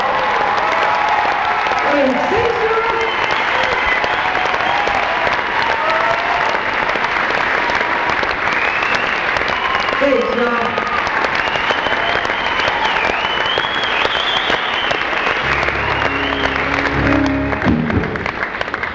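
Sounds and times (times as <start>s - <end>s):
crowd: 0.0s - 18.9s.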